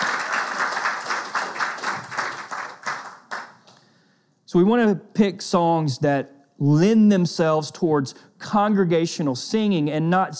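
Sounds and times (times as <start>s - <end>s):
audience clapping along rhythmically: 0.0s - 3.8s
speech: 4.5s - 10.3s.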